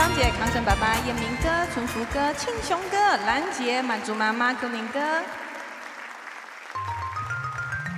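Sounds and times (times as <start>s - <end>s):
speech: 0.2s - 5.5s
audience applause at a live singing event: 2.9s - 7.9s.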